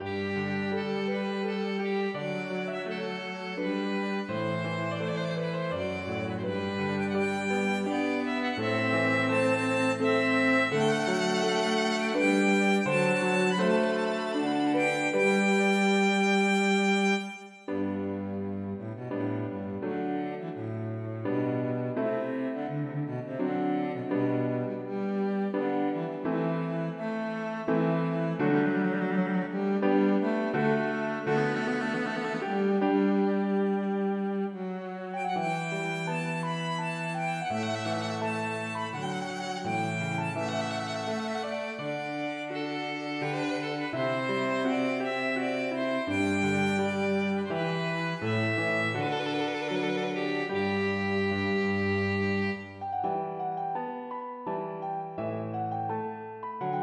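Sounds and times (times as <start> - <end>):
minuet for violin cello and piano: 0.0 - 56.8.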